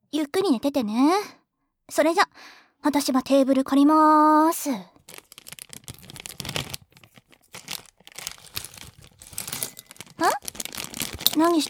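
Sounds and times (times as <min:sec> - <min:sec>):
speech: 0:00.2 - 0:05.2, 0:11.4 - 0:11.6
pistachios being shelled, rustling and crunching: 0:05.0 - 0:11.6.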